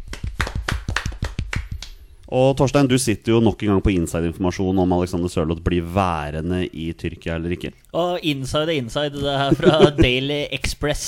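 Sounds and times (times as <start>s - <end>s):
applause: 0.1s - 1.9s
speech: 2.3s - 11.0s
laughter: 9.2s - 10.2s.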